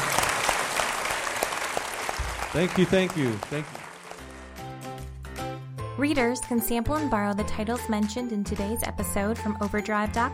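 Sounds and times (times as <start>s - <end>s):
audience applause: 0.0s - 4.7s
speech: 2.5s - 3.8s, 6.0s - 10.3s.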